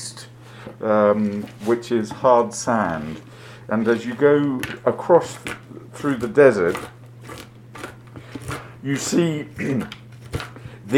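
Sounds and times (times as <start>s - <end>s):
speech: 0.6s - 6.9s, 8.8s - 10.0s
chopping: 5.3s - 10.9s.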